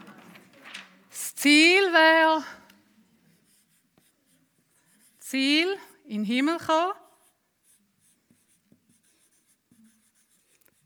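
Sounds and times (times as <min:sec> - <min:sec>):
speech: 0:01.4 - 0:02.6, 0:05.3 - 0:07.0
pen writing on paper by hand: 0:03.2 - 0:06.0, 0:07.0 - 0:10.8.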